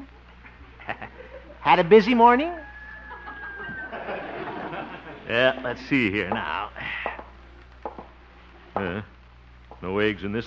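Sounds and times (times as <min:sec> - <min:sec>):
laughter: 0:00.7 - 0:01.6, 0:02.7 - 0:06.1
speech: 0:00.9 - 0:02.6, 0:05.3 - 0:06.7, 0:08.8 - 0:09.1, 0:09.8 - 0:10.4
hens clucking in a henhouse: 0:02.6 - 0:05.6.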